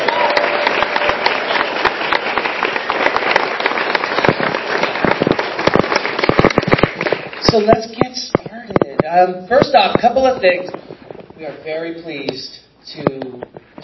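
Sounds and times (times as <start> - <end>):
crowd clapping: 0.0 - 8.2
speech: 7.5 - 8.3, 9.0 - 10.8, 11.4 - 13.6.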